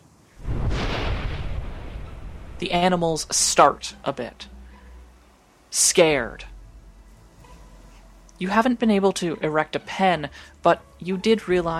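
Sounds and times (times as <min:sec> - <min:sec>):
peal of thunder: 0:00.4 - 0:04.2
speech: 0:02.6 - 0:04.6, 0:05.7 - 0:06.5, 0:08.4 - 0:11.7.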